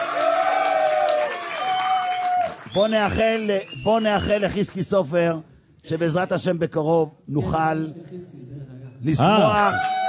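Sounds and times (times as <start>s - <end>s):
audience applause: 0.0s - 3.8s, 9.2s - 10.0s
speech: 2.8s - 8.4s, 9.0s - 10.0s.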